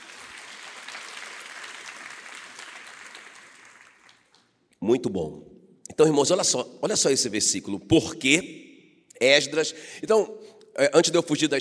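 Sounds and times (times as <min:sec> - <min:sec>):
audience applause: 0:00.0 - 0:04.4
speech: 0:04.8 - 0:08.6, 0:09.2 - 0:11.5.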